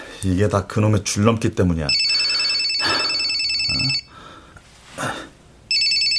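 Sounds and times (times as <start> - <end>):
speech: 0.2 - 2.1
telephone ringing with a bright warbling electronic tone: 1.9 - 4.1, 5.7 - 6.1.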